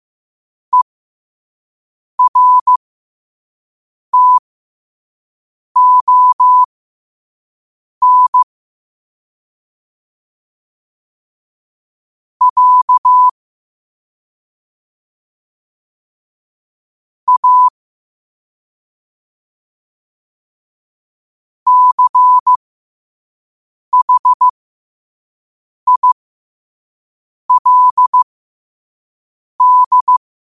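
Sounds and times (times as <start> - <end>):
morse code at 5 wpm: 2.2 - 2.8, 4.2 - 4.4, 5.8 - 6.7, 8.0 - 8.5, 12.4 - 13.3, 17.3 - 17.7, 21.7 - 22.6, 24.0 - 24.5, 25.9 - 26.2, 27.5 - 28.2, 29.6 - 30.2.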